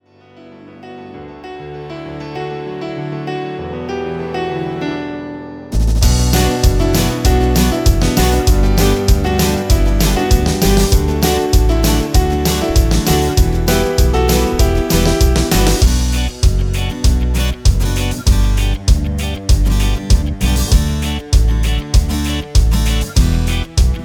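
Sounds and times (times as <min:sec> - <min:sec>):
music beat: 0:05.8 - 0:24.0.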